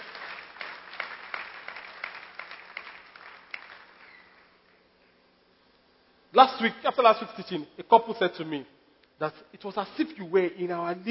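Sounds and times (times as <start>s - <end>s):
audience clapping: 0.0s - 4.8s
speech: 6.3s - 11.0s.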